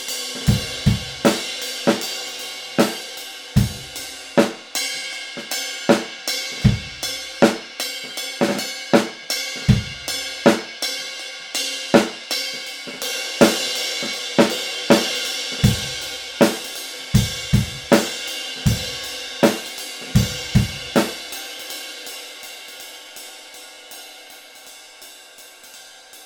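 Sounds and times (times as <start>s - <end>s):
classic 20-inch ride cymbal: 0.0s - 26.2s.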